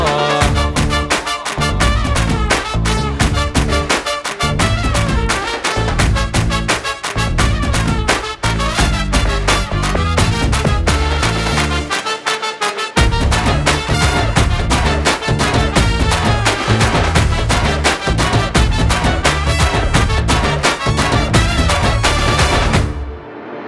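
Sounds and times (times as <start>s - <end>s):
instrumental music: 0.0s - 23.6s.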